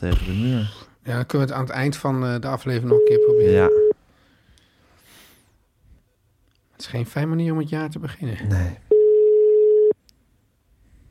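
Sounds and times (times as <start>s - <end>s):
speech: 0.0s - 3.8s, 6.8s - 8.8s
phone call ringing tone: 2.9s - 4.0s, 8.9s - 10.0s.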